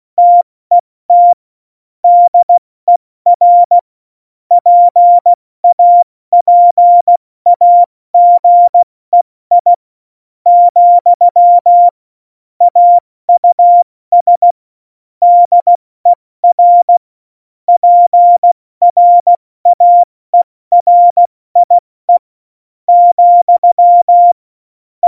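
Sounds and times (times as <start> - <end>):
CW Morse code beeps: 0.2 - 1.4, 2.1 - 3.8, 4.6 - 8.8, 9.5 - 9.7, 10.5 - 11.9, 12.7 - 14.6, 15.2 - 15.8, 16.4 - 17.0, 17.8 - 20.1, 20.7 - 22.2, 22.9 - 24.4.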